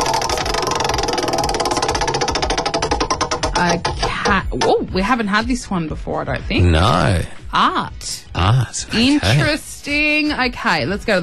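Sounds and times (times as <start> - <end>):
prize wheel spinning with ratcheting clicks: 0.0 - 4.6
speech: 3.6 - 11.2.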